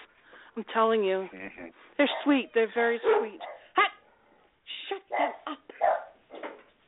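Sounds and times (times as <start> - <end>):
speech: 0.6 - 3.9
dogs barking: 2.0 - 4.4, 5.0 - 6.3.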